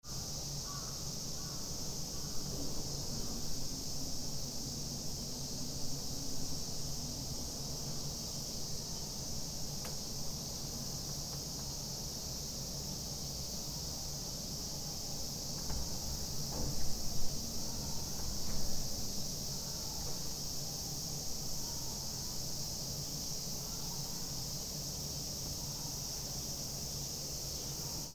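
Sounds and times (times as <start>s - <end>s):
cicada: 0.0s - 28.1s.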